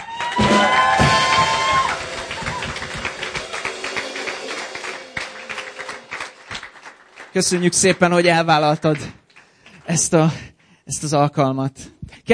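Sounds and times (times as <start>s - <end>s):
brief tonal cheer: 0.0s - 6.6s
audience applause: 0.0s - 10.2s
speech: 7.4s - 9.2s, 9.9s - 12.3s.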